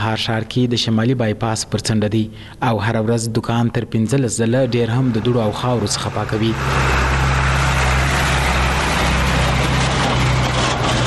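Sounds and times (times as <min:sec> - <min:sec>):
speech: 0:00.0 - 0:07.1
traffic of trucks and cars on a dusty bypass road in Kandahar: 0:04.6 - 0:11.0.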